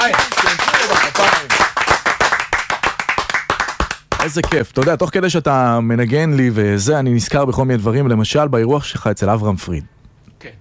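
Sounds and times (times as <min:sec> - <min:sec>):
many hands clapping: 0:00.0 - 0:05.1
speech: 0:04.2 - 0:10.6.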